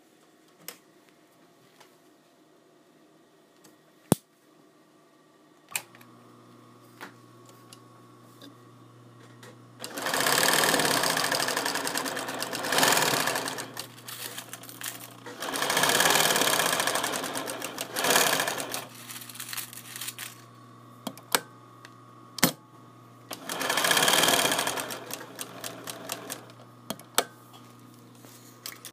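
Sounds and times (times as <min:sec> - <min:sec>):
machine running: 0:09.8 - 0:21.5, 0:23.3 - 0:27.3.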